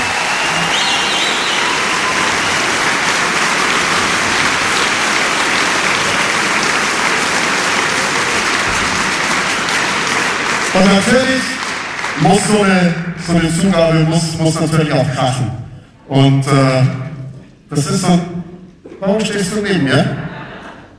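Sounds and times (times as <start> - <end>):
concert hall audience applause in the Metropolishalle: 0.0 - 13.0
speech: 10.8 - 11.5, 12.2 - 17.0, 17.7 - 20.2
laughter: 19.9 - 20.9.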